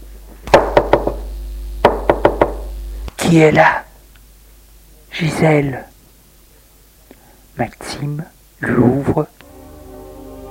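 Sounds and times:
knocking on a door: 0:00.5 - 0:01.2, 0:01.8 - 0:02.7
speech: 0:03.3 - 0:03.9, 0:05.2 - 0:05.9, 0:07.6 - 0:09.4.

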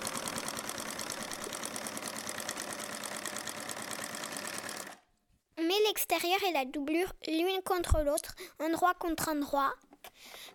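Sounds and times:
sewing machine stitching two fabric pieces for a face mask: 0:00.0 - 0:05.1
speech: 0:05.9 - 0:10.5.

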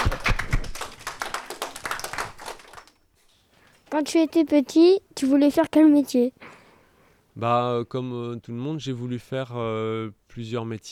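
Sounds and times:
audience clapping: 0:00.0 - 0:03.0
speech: 0:03.9 - 0:06.5, 0:07.4 - 0:10.9.

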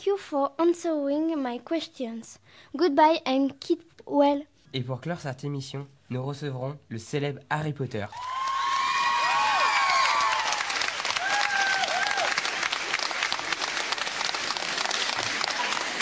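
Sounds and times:
speech: 0:00.0 - 0:08.4
audience applause and cheering: 0:08.1 - 0:16.0.

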